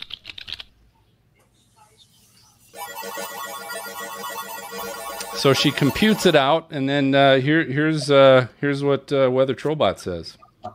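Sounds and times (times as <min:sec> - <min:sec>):
typing on a computer keyboard: 0:00.0 - 0:00.7
speech: 0:04.7 - 0:10.4.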